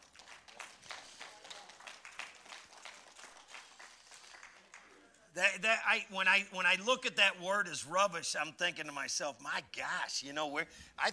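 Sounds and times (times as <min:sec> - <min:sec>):
crowd clapping: 0:00.0 - 0:05.3
speech: 0:05.4 - 0:11.1.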